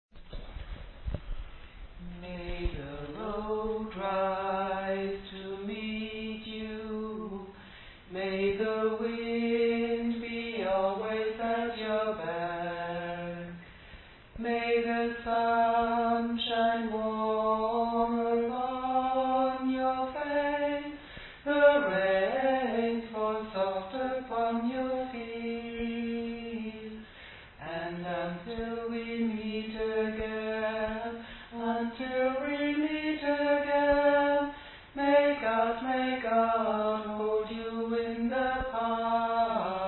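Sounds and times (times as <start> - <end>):
tenor singing: 2.0 - 13.7, 14.4 - 39.8.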